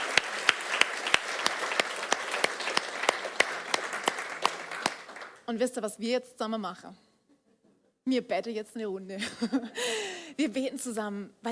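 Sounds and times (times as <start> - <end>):
audience applause: 0.0 - 5.4
speech: 5.5 - 7.1, 8.0 - 11.5
laughter: 9.2 - 9.8.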